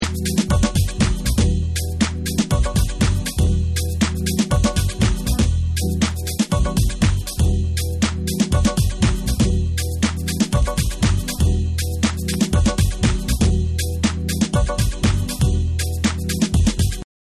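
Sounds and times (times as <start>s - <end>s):
instrumental music: 0.0s - 17.0s.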